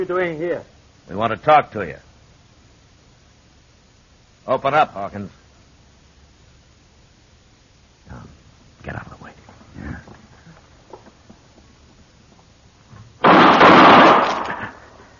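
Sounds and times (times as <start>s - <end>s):
speech: 0.0s - 2.1s, 4.5s - 5.4s, 8.1s - 9.2s
quiet shuffling: 8.2s - 13.2s
gunshot: 13.2s - 14.9s.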